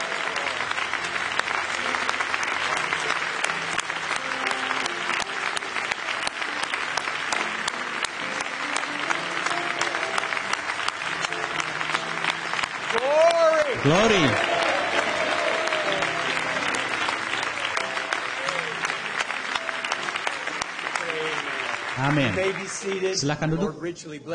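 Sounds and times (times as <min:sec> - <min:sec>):
audience applause: 0:00.0 - 0:23.4
speech: 0:13.8 - 0:14.5, 0:22.1 - 0:24.3.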